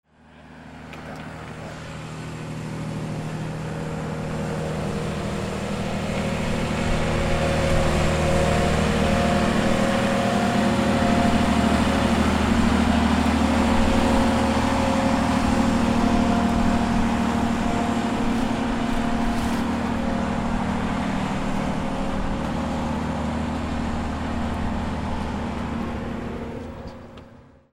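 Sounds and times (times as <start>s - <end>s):
boats: 0.0s - 27.7s.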